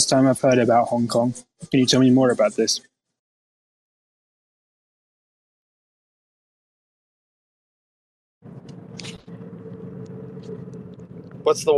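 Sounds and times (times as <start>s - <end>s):
speech: 0.0s - 2.9s, 11.4s - 11.7s
interior road noise from a moving car: 8.4s - 11.7s.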